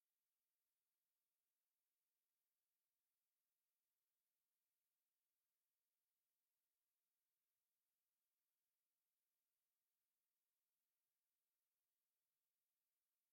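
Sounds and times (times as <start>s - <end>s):
sine wave tones: 0.0s - 13.3s.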